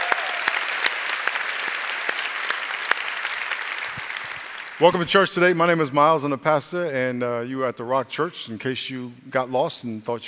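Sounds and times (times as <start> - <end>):
church congregation applauding people in the military: 0.0 - 5.2
speech: 4.8 - 10.2.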